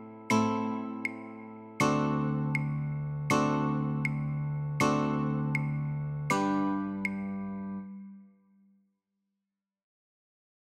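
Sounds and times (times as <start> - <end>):
guitar chords: 0.0 - 8.1.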